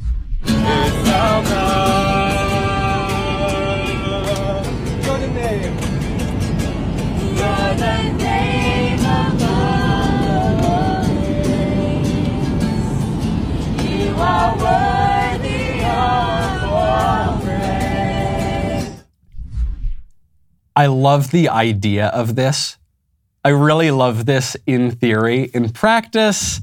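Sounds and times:
group of Christian singers singing modern worship music in an airplane: 0.5s - 5.1s, 6.3s - 19.0s
guitarist playing in the middle of an airplane: 0.5s - 19.0s
speech: 20.8s - 22.8s, 23.4s - 26.6s.

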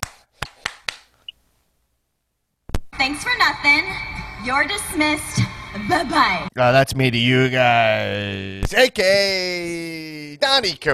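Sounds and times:
one person clapping: 0.0s - 1.1s
speech: 3.0s - 10.9s.

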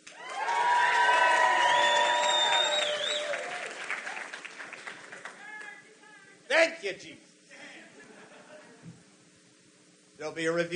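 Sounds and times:
audience applause: 0.0s - 5.8s
speech: 6.8s - 7.3s, 10.2s - 10.7s
laughter: 7.5s - 9.0s.

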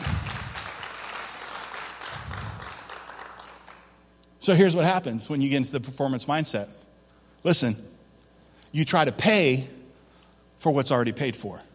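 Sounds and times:
audience applause: 0.0s - 3.9s
speech: 4.4s - 6.8s, 7.4s - 8.0s, 8.7s - 9.8s, 10.6s - 11.7s.

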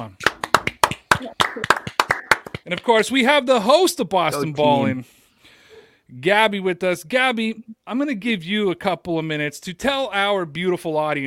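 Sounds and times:
crowd applauding: 0.2s - 3.0s
speech: 2.7s - 5.2s, 6.1s - 11.2s.

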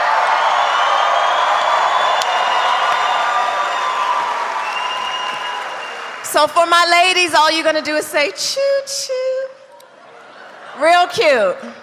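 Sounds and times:
rally crowd cheering: 0.0s - 7.2s
speech: 6.4s - 9.2s, 10.8s - 11.8s
laughter: 9.7s - 11.8s.

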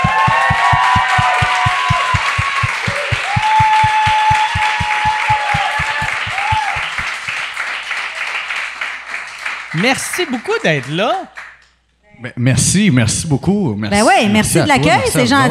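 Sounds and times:
people cheering: 0.0s - 8.5s
audience clapping in a steady driving rhythm: 0.0s - 11.8s
speech: 9.8s - 11.4s, 12.2s - 15.4s.

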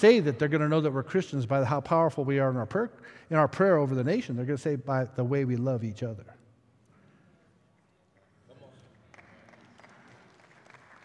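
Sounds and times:
speech: 0.0s - 6.4s
weak audience claps: 8.1s - 11.0s.

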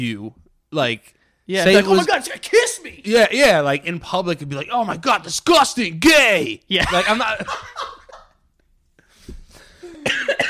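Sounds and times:
speech: 0.0s - 8.0s
laughter: 6.8s - 8.4s
person coughing with a cold: 9.8s - 10.4s.

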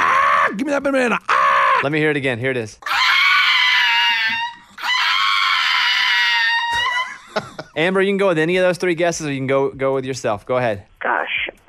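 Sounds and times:
speech: 0.6s - 2.9s, 7.4s - 11.2s
pug shrieking like a human: 2.8s - 7.2s
laughter: 6.6s - 7.9s.

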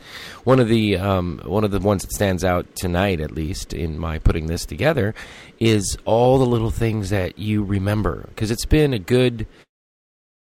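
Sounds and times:
breathing into a microphone: 0.0s - 0.4s, 5.2s - 5.6s
speech: 0.4s - 9.6s.

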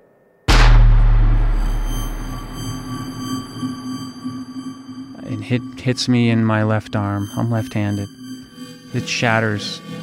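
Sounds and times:
gunshot: 0.5s - 3.8s
speech: 5.4s - 8.2s, 8.9s - 10.0s.

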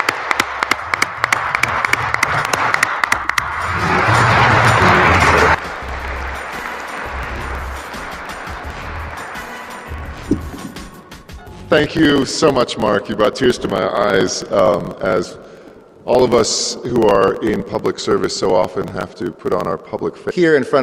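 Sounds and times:
audience applause: 0.0s - 11.0s
speech: 11.7s - 15.5s, 16.1s - 20.8s.

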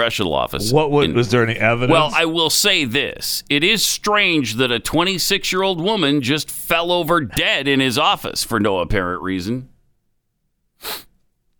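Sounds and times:
speech: 0.0s - 9.7s, 10.8s - 11.1s
person sniffling or sneezing: 10.8s - 11.1s.

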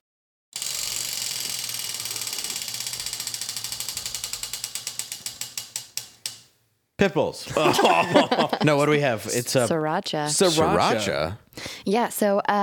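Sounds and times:
prize wheel spinning and clicking: 0.6s - 6.4s
speech: 7.0s - 12.6s
laughter: 7.5s - 9.7s.

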